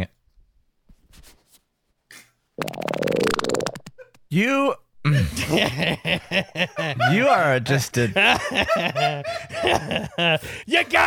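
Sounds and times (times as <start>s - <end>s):
fart sound effect in a bird-chirp clip: 2.6s - 4.0s
speech: 4.3s - 11.0s
laughter: 5.1s - 10.5s.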